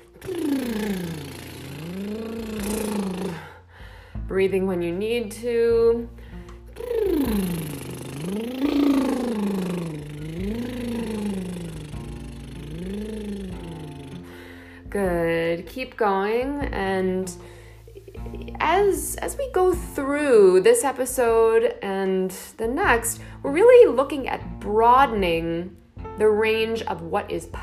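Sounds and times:
lip flutter vocal exercise sliding in pitch: 0.0 - 3.4, 6.8 - 14.2
speech: 4.4 - 6.2, 7.3 - 8.5, 15.0 - 17.4, 18.7 - 27.6.

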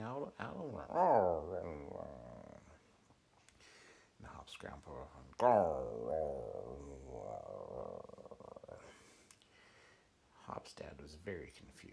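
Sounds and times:
speech: 0.3 - 2.3, 4.2 - 8.2, 10.5 - 11.9
human voice imitating a low rumbly growl: 0.6 - 2.8, 5.3 - 9.0.

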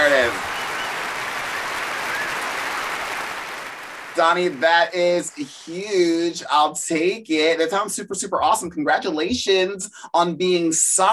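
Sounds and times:
canned crowd applause sound effect from soundboard button: 0.0 - 6.2
speech: 0.1 - 0.5, 4.2 - 11.1.

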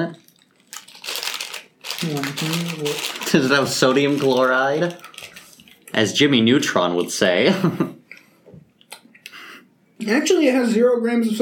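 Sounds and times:
crunching dehydrated apple crisps: 0.1 - 5.8
speech: 2.0 - 5.1, 5.9 - 8.0, 10.1 - 11.4.

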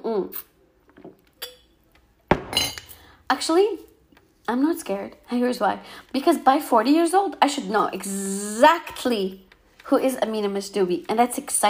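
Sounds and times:
speech: 0.1 - 0.5, 3.3 - 3.9, 4.5 - 11.6
glass clinking while getting water: 2.3 - 3.0.

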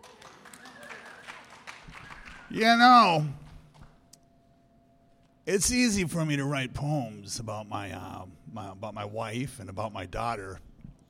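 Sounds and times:
scattered audience applause: 0.0 - 2.6
speech: 2.5 - 3.4, 5.5 - 10.7.

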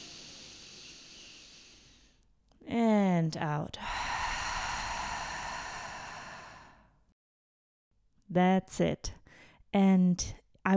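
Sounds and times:
deep breath in through the nose during a guided breathing exercise: 0.0 - 2.2, 3.8 - 7.0
speech: 3.3 - 4.1, 8.3 - 10.7.

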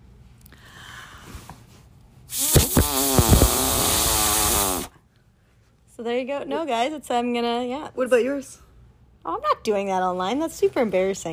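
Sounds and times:
voice imitating a fart: 2.3 - 5.0
speech: 6.0 - 8.6, 9.2 - 11.3.

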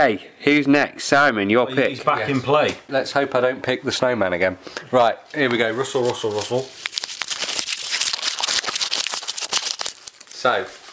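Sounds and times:
speech: 0.0 - 6.9, 10.4 - 10.8
small scrap of paper being crinkled: 5.6 - 10.9.

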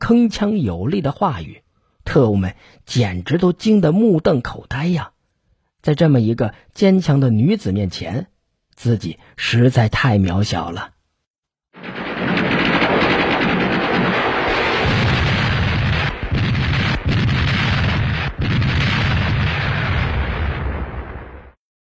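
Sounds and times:
speech: 0.1 - 5.1, 5.8 - 11.0
distant artillery fire: 11.8 - 21.6.

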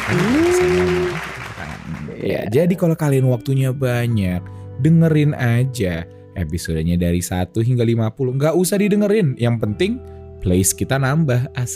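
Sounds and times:
people clapping: 0.0 - 2.6
speech: 0.1 - 0.5, 2.2 - 11.7.

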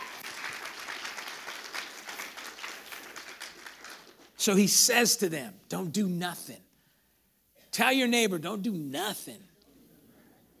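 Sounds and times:
audience hand clapping: 0.0 - 4.4
speech: 4.4 - 6.7, 7.8 - 9.5.

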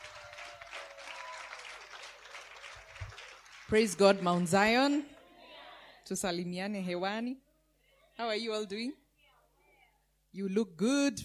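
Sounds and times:
crowd applause: 0.0 - 5.0
speech: 3.7 - 5.1, 6.1 - 7.4, 8.2 - 9.0, 10.3 - 11.2.

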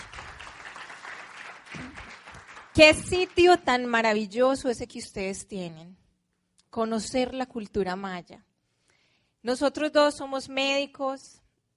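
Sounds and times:
audience applause: 0.0 - 3.4
speech: 2.8 - 6.0, 6.8 - 8.5, 9.4 - 11.4.

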